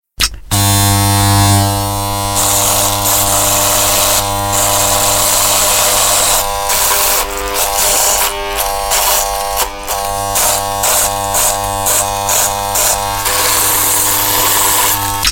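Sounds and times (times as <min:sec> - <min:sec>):
annoying razor noise: 0:00.5 - 0:15.3.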